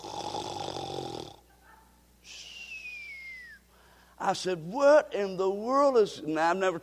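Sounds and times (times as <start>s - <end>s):
voice imitating loud snoring: 0.0s - 1.4s
speech: 4.2s - 6.8s.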